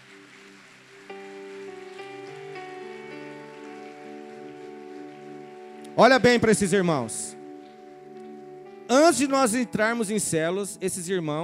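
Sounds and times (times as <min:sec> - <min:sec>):
crowd applause: 0:00.0 - 0:07.4
sustained keyboard chords: 0:00.0 - 0:11.4
speech: 0:06.0 - 0:07.4, 0:09.1 - 0:11.4.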